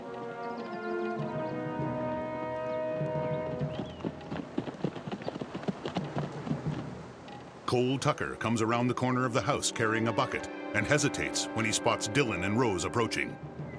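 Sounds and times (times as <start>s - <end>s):
horses' hooves clip-clopping as two riders ride up: 0.0s - 7.7s
speech: 7.7s - 13.5s
sustained tonal sound: 8.4s - 13.6s.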